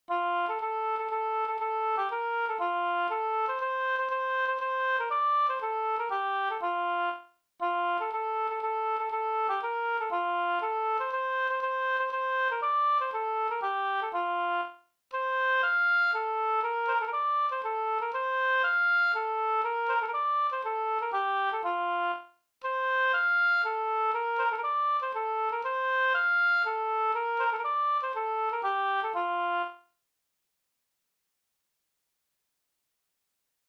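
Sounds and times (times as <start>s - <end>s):
Swedish polska folk tune: 0.1s - 29.8s.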